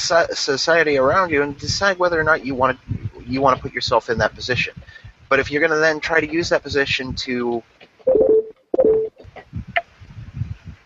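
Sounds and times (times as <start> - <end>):
low rumbling: 0.0 - 7.3, 9.1 - 10.8
speech: 0.1 - 8.2
Facebook notification beeps: 8.1 - 9.2.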